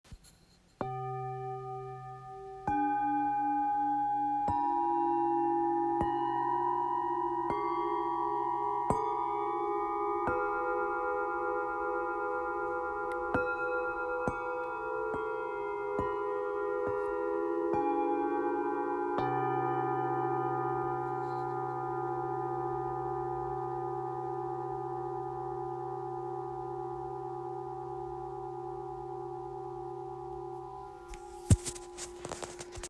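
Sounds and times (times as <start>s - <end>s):
Tibetan singing bowls: 0.8s - 32.8s.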